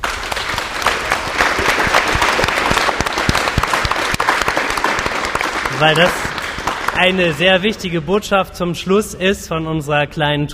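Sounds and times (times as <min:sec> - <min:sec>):
audience applause: 0:00.0 - 0:08.0
speech: 0:05.8 - 0:06.3, 0:07.0 - 0:10.5.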